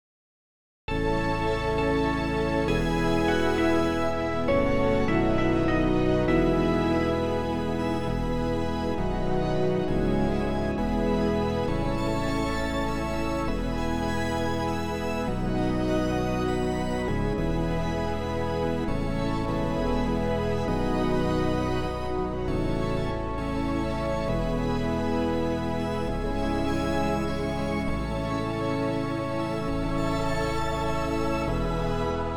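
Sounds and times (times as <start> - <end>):
backing music: 0.9 - 32.3.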